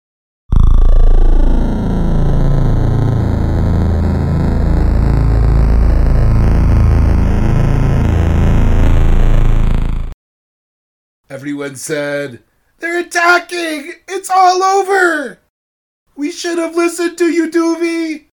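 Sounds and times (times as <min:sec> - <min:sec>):
loud buzzing of many flying drones: 0:00.5 - 0:10.1
speech: 0:11.4 - 0:15.4, 0:16.2 - 0:18.3.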